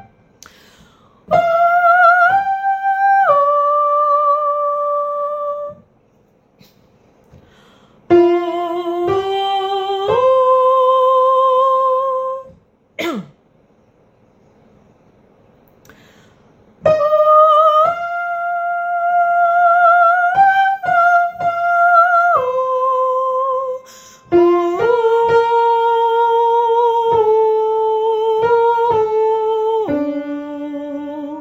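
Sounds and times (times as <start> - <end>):
soprano singing: 1.2 - 5.9, 8.1 - 12.6, 16.8 - 31.4.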